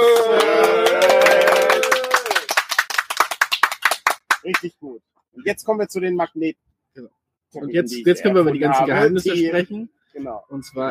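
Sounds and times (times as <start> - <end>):
small live audience applauding at live convention: 0.0 - 4.7
speech: 4.6 - 10.8.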